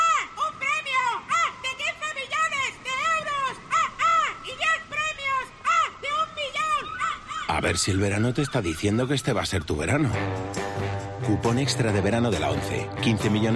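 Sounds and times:
seagull calling: 0.0s - 10.0s
speech: 7.6s - 10.6s, 11.3s - 13.5s.

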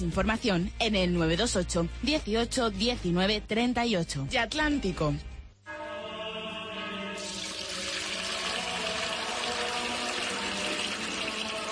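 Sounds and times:
speech: 0.0s - 5.3s
water pouring into a container: 7.2s - 11.6s.

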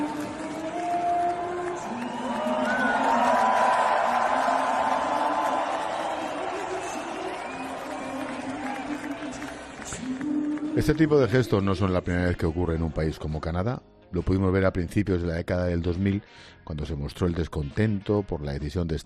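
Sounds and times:
hockey arena crowd singing national anthem: 0.0s - 11.0s
speech: 10.8s - 19.0s.

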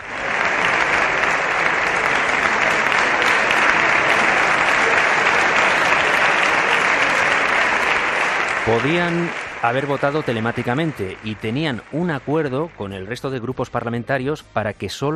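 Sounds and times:
parliamentary bench applauding the leader: 0.0s - 14.3s
speech: 8.7s - 15.1s.

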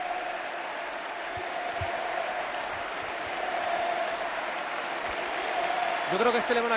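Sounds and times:
faint rising cheer: 0.0s - 6.7s
stadium crowd applauding: 0.0s - 6.7s
speech: 6.1s - 6.7s.

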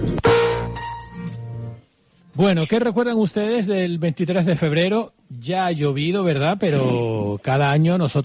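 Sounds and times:
gunshot in parliament chamber: 0.2s - 0.7s
speech: 2.4s - 8.2s.

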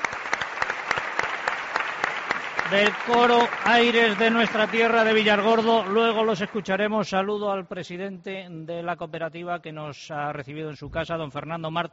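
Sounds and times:
audience applause: 0.0s - 6.8s
speech: 2.7s - 11.9s.

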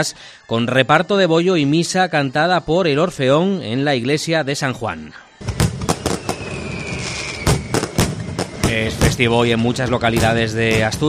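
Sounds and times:
speech: 0.0s - 5.6s, 8.7s - 11.0s
fireworks exploding: 5.4s - 11.0s.

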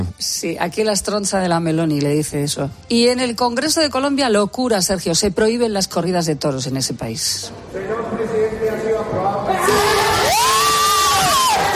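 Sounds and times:
speech: 0.2s - 9.9s
crowd cheering: 9.5s - 11.7s.

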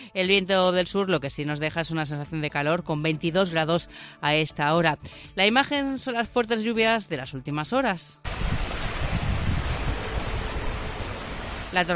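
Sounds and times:
speech: 0.1s - 8.5s, 11.7s - 11.9s
floodwater gushing up like a geyser: 8.3s - 11.9s.

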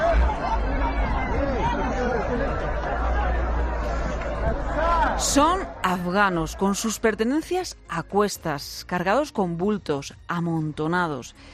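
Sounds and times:
crowd of Afghans babbling at the Afghanistan–Pakistan land border crossing: 0.0s - 8.0s
speech: 5.2s - 11.5s.

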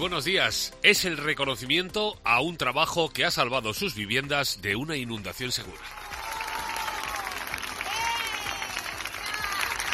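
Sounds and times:
speech: 0.0s - 6.1s
neighbours applauding: 5.6s - 9.9s.

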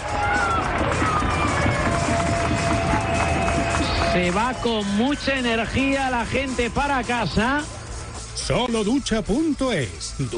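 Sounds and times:
stadium crowd applauding: 0.0s - 7.7s
speech: 4.2s - 7.8s, 8.4s - 10.3s.

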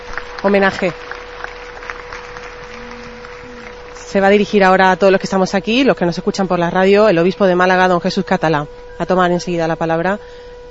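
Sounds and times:
crowd applauding: 0.0s - 4.9s
faint constant hum: 0.0s - 10.7s
speech: 0.4s - 1.0s, 4.1s - 10.4s.

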